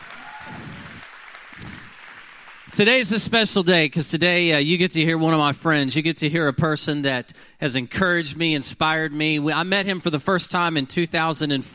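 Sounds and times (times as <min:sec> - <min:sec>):
church congregation applauding to welcome the LaGrange campus: 0:00.0 - 0:03.4
speech: 0:02.8 - 0:11.7.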